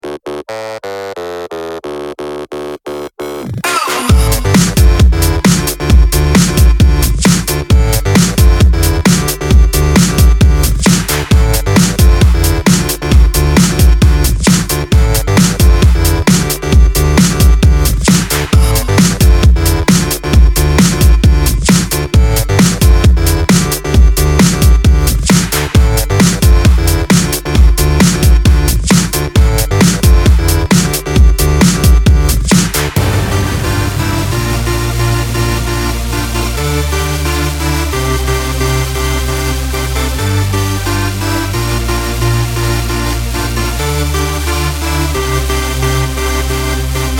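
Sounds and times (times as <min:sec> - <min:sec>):
instrumental music: 0:00.0 - 0:47.1.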